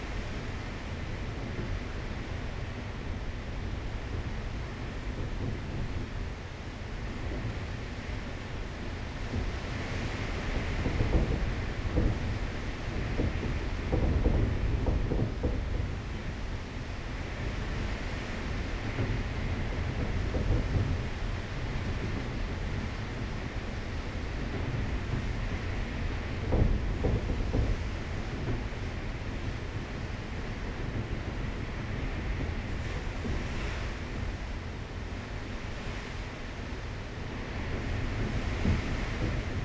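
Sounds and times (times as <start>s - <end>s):
storm outside a door in Curacao: 0.0s - 39.6s.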